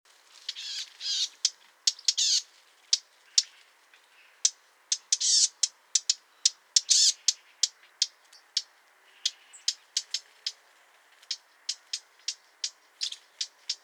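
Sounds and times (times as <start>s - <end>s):
Eurasian blackcap Sylvia atricapilla calling with sharp ticking notes: 0.4s - 13.8s.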